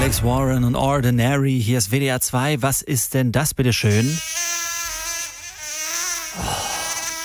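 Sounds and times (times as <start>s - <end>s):
speech: 0.1s - 4.4s
mosquito buzzing: 4.0s - 7.2s.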